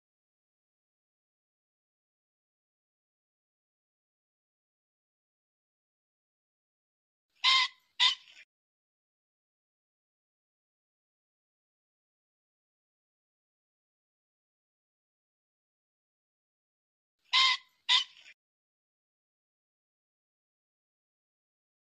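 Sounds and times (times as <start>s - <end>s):
pheasant squawking: 7.4s - 8.4s, 17.3s - 18.4s.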